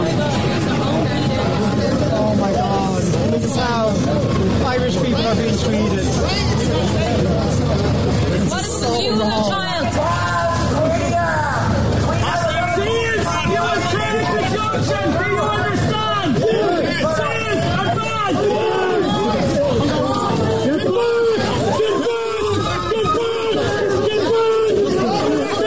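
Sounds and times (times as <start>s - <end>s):
crowd being pushed back by police: 0.0s - 25.6s.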